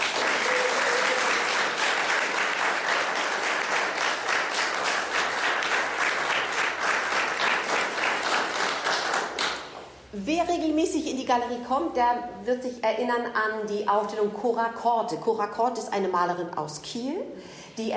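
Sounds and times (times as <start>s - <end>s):
audience applause welcoming a guest: 0.0s - 9.6s
speech: 10.3s - 17.9s.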